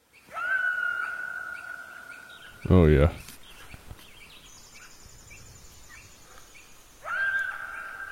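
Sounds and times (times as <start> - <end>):
individual coyote yipping: 0.3 - 2.7, 5.9 - 8.0
speech: 2.6 - 3.2.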